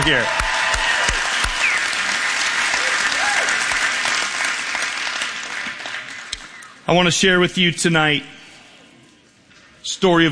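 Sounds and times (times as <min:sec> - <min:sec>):
speech: 0:00.0 - 0:00.4, 0:06.9 - 0:08.4, 0:09.8 - 0:10.3
audience applause: 0:00.0 - 0:06.6.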